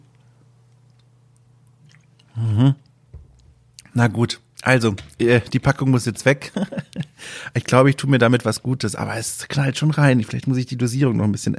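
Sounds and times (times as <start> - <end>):
person sipping a drink: 0.7 - 2.6
speech: 4.0 - 11.5
laughter: 6.4 - 7.2.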